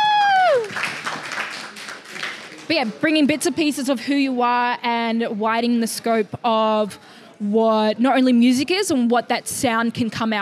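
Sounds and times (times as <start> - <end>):
round of applause: 0.0 - 3.0
speech: 2.7 - 10.4.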